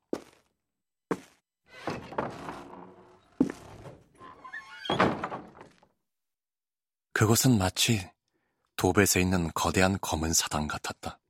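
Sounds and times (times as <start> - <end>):
second door being pushed open: 1.7 - 5.8
speech: 7.2 - 8.1, 8.8 - 11.2.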